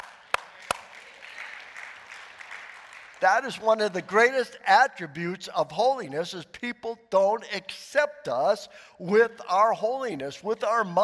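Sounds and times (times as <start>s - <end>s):
audience clapping hands: 0.0s - 4.1s
speech: 3.2s - 11.0s.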